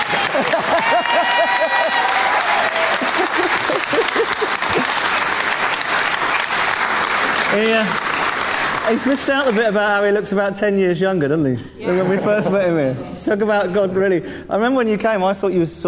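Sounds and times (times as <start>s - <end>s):
laughter: 0.0s - 5.2s, 11.8s - 13.3s
clapping: 0.0s - 9.8s
speech: 7.6s - 8.0s, 8.9s - 15.8s.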